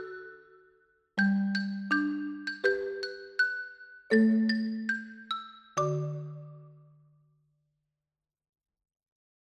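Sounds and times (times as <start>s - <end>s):
slow Christmas song: 0.0s - 7.3s.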